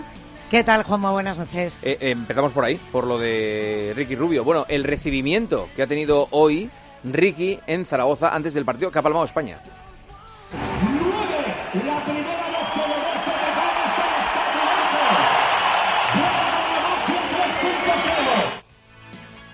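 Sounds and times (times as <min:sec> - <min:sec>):
speech: 0:00.5 - 0:10.8
crowd applauding in basketball arena: 0:10.6 - 0:18.6.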